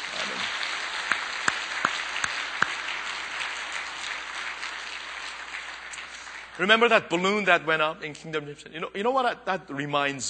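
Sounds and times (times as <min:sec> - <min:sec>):
sharp individual claps: 0:00.0 - 0:06.6
audience applause: 0:00.0 - 0:06.9
speech: 0:06.6 - 0:10.2.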